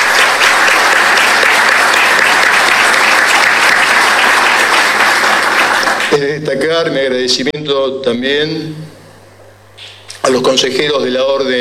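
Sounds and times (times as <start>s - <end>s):
audience applause: 0.0s - 6.2s
speech: 6.2s - 8.9s, 10.2s - 11.5s.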